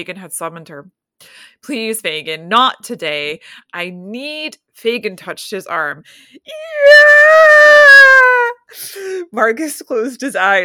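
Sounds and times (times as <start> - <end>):
speech: 0.0 - 10.6
woman screaming: 6.5 - 8.7.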